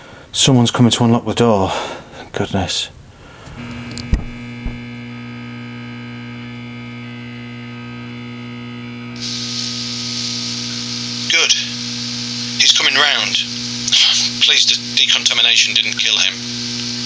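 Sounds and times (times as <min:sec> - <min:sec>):
electrical mains hum with layered harmonic tones: 0:00.0 - 0:17.0
speech: 0:00.4 - 0:03.0, 0:14.6 - 0:16.6
hissy band of static: 0:09.1 - 0:17.0.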